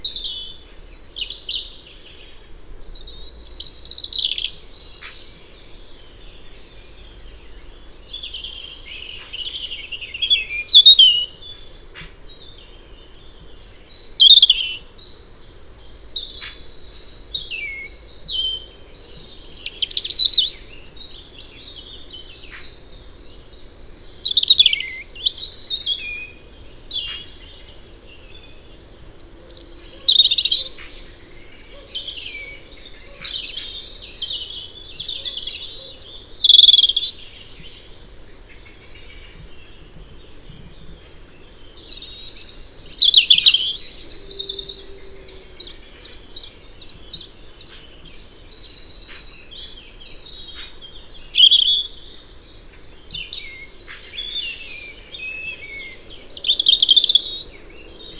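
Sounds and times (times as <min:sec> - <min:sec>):
European robin Erithacus rubecula singing: 0:00.0 - 0:58.1.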